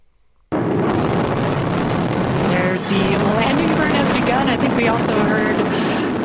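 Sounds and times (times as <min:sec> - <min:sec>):
SpaceX Falcon 9 rocket booster roaring as it returns to land: 0:00.5 - 0:06.2
voices: 0:02.4 - 0:06.1.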